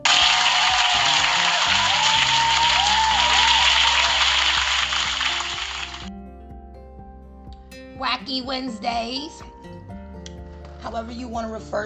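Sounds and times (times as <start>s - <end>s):
whistles and cheers: 0.0s - 5.9s
round of applause: 0.0s - 6.1s
speech: 8.3s - 9.5s, 10.8s - 11.8s.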